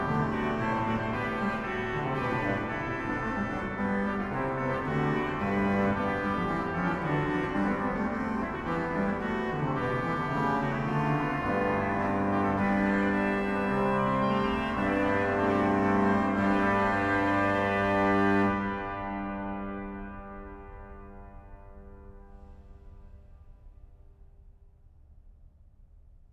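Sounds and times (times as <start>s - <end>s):
organ playing a chorale: 0.0s - 19.7s.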